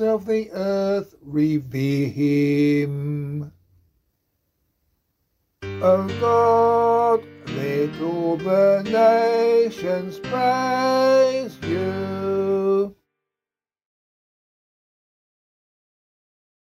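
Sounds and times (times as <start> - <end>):
psalm singing: 0.0 - 3.5, 5.6 - 13.0.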